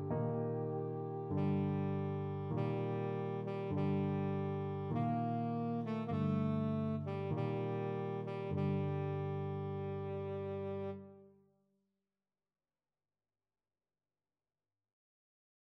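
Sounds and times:
tenor saxophone: 0.0s - 11.3s.

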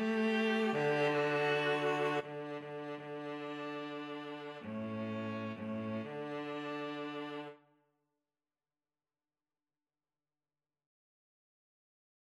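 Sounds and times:
string trio: 0.0s - 7.6s.

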